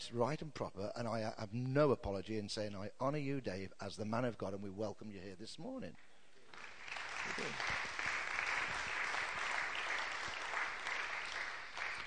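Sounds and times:
speech: 0.1s - 7.9s
audience applauding: 6.5s - 12.0s.

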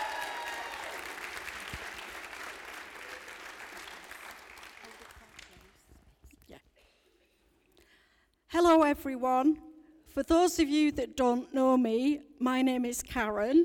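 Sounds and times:
audience whooping and cheering: 0.0s - 5.0s
speech: 8.6s - 13.6s.

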